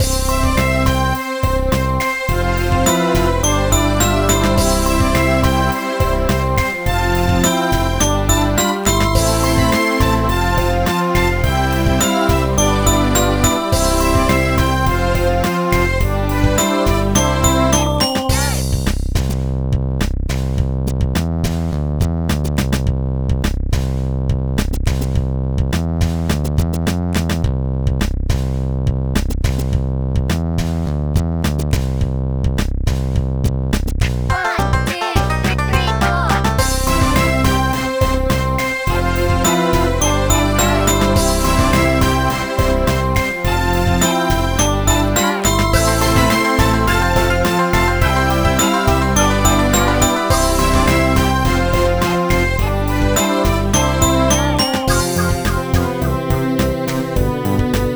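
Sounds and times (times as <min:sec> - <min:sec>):
music at 100 bpm: 0:00.0 - 0:57.9.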